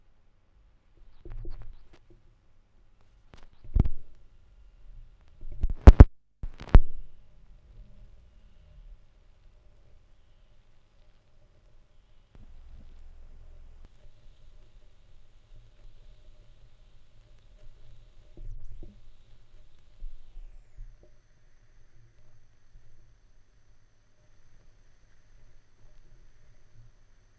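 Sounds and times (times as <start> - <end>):
vinyl record noise: 1.0 - 2.2, 3.3 - 4.2, 5.2 - 7.2, 12.3 - 21.1.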